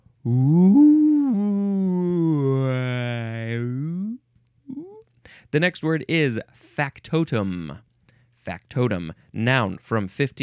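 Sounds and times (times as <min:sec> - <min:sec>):
speech: 0:00.2 - 0:00.9, 0:05.5 - 0:10.4
human voice imitating a whale: 0:00.2 - 0:05.0.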